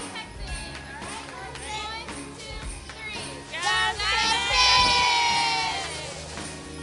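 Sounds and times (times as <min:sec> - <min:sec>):
crowd chatter: 0:00.0 - 0:06.7
child shouting a cheerleading cheer: 0:03.6 - 0:06.2.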